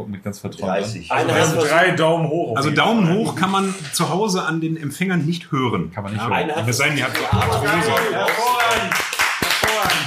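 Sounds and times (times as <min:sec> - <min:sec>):
speech: 0:00.0 - 0:09.1
scattered hand claps from a small group: 0:07.0 - 0:10.0.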